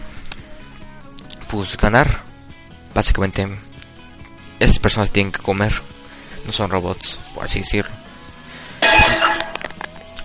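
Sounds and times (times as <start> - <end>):
speech: 1.5 - 2.3, 3.0 - 3.7, 4.6 - 8.0
cooking pot falling and clanging: 8.8 - 9.8.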